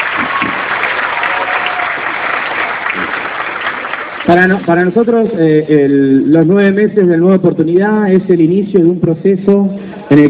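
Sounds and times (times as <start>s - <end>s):
crowd applause: 0.0s - 4.9s
speech: 4.3s - 10.2s.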